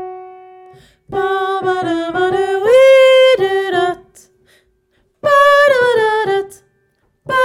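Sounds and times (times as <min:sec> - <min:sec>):
soprano voice: 0:01.1 - 0:04.4, 0:05.2 - 0:06.7, 0:07.3 - 0:07.4.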